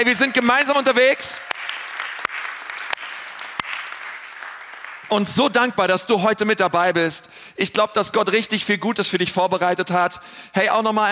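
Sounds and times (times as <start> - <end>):
speech: 0.0 - 1.5, 5.1 - 11.1
audience applause: 0.0 - 5.3.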